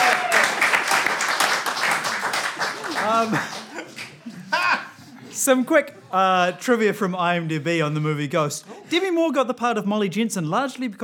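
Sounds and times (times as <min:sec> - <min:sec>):
whoops and cheers: 0:00.0 - 0:00.8
crowd applauding: 0:00.0 - 0:04.4
people laughing: 0:01.9 - 0:05.4
speech: 0:03.2 - 0:03.6, 0:05.4 - 0:11.0.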